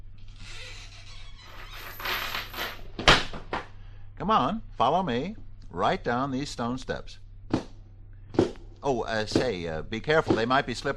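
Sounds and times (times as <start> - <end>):
trap door creaking open: 0.2 - 3.4
speech: 4.2 - 7.2, 8.8 - 10.9.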